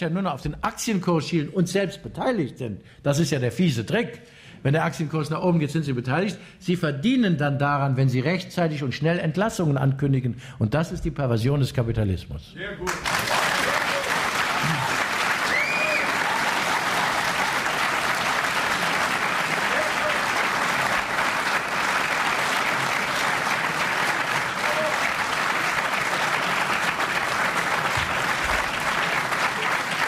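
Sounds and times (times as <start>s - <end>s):
speech: 0.0s - 13.4s
audience applause: 12.8s - 30.0s
faint voices and whoops: 13.6s - 16.8s, 24.5s - 25.2s.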